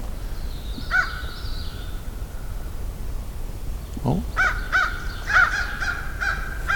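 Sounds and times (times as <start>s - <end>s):
crows cawing: 0.2s - 1.4s, 4.4s - 6.7s
raven: 0.2s - 2.7s, 4.3s - 6.7s.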